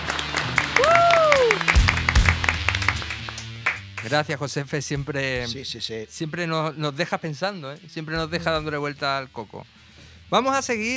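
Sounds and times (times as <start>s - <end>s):
applause: 0.0s - 4.2s
speech: 4.1s - 10.9s.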